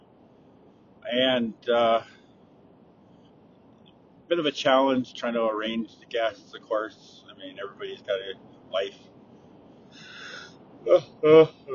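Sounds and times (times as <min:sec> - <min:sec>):
speech: 0:01.1 - 0:02.2, 0:04.3 - 0:09.1, 0:10.8 - 0:11.7
yawn: 0:10.0 - 0:11.7.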